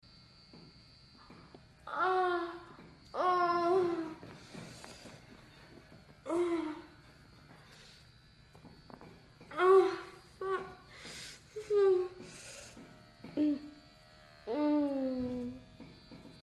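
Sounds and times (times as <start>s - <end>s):
person moaning: 1.9s - 4.2s, 6.3s - 7.0s, 9.5s - 12.2s, 14.5s - 15.6s.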